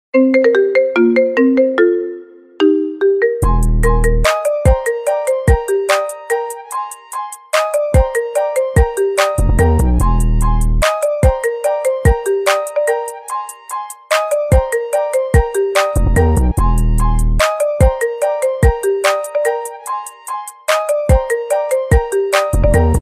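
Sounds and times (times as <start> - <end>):
marimba remix: 0.2 - 23.0.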